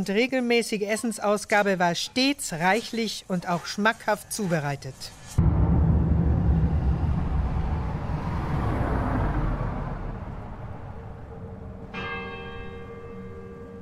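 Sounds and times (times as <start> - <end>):
speech: 0.0 - 5.5
car driving on a road toward Bad Freienwalde on the Oder: 5.4 - 13.7
bright ringing bell tone: 11.9 - 13.7.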